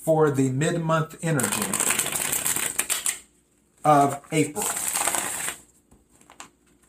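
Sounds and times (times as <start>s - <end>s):
speech: 0.0s - 2.0s, 3.8s - 4.8s
tarot cards being shuffled: 1.4s - 3.3s, 3.9s - 6.8s.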